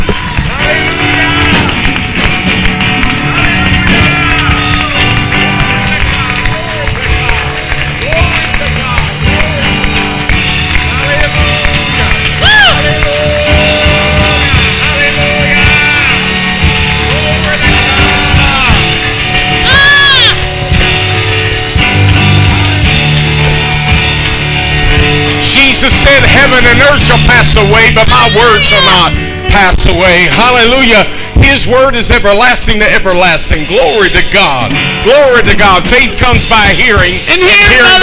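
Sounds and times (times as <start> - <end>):
audience applause: 0.0 - 29.4
speech: 26.9 - 38.0.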